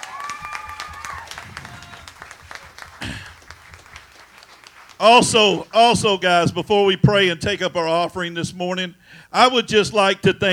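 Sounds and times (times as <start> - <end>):
whoops and cheering voices: 0.0 - 2.8
audience applause: 0.0 - 5.7
speech: 5.0 - 10.5.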